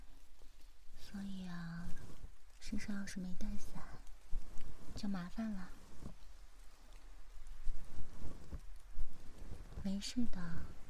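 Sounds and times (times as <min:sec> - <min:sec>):
rain falling: 0:00.0 - 0:10.8
speech: 0:01.1 - 0:02.0, 0:02.7 - 0:04.0, 0:05.0 - 0:06.2, 0:09.8 - 0:10.8.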